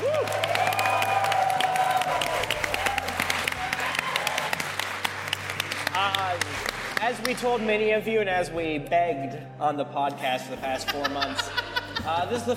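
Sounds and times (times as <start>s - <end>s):
audience whoops: 0.0s - 5.0s
theater audience applause at a DragonCon live show: 0.0s - 7.6s
speech: 7.3s - 12.5s
laughter: 10.7s - 12.5s.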